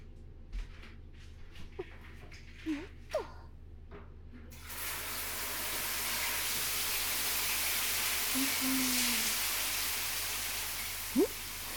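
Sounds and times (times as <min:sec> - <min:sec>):
shower running water: 0:04.6 - 0:11.7.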